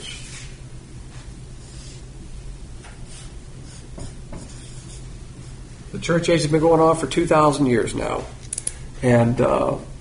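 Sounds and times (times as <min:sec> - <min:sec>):
low steady hum: 0:00.0 - 0:10.0
marker strokes drawing a timeline on a board: 0:03.1 - 0:05.6
speech: 0:06.0 - 0:08.4, 0:09.0 - 0:09.9.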